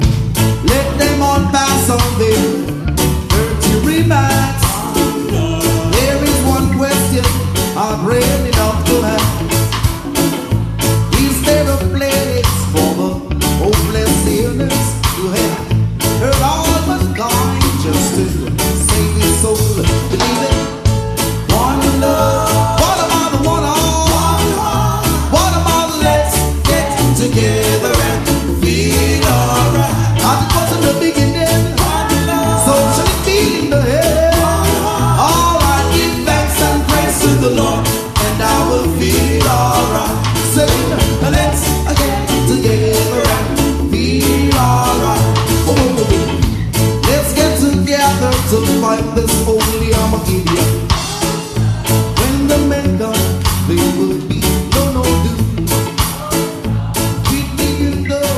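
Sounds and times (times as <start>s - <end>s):
reggae music: 0.0s - 58.3s.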